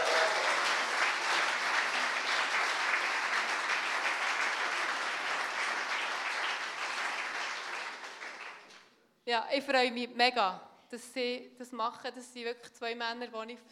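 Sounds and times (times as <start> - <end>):
audience clapping: 0.0 - 9.0
speech: 9.3 - 13.6.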